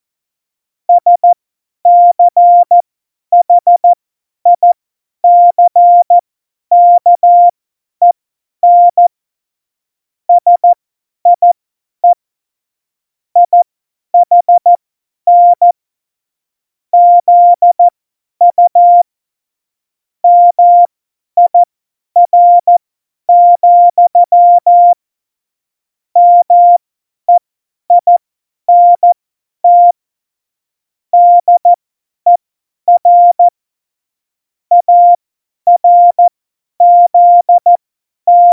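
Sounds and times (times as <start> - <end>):
Morse code CW keying for a Morse course: 0.9 - 2.8, 3.4 - 7.5, 8.6 - 9.1, 10.3 - 10.8, 11.4 - 12.2, 13.4 - 13.6, 14.2 - 15.8, 17.0 - 19.1, 20.2 - 25.0, 26.2 - 30.0, 31.2 - 33.5, 34.7 - 38.5.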